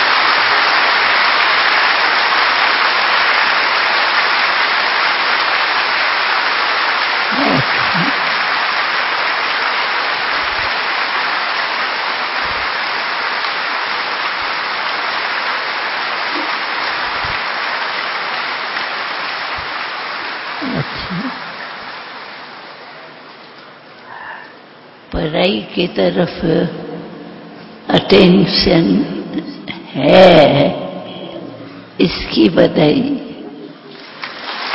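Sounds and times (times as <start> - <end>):
audience applause for a student's good results: 0.0 - 23.3, 34.0 - 34.7
speech: 25.4 - 26.8, 27.9 - 30.8, 32.0 - 33.2.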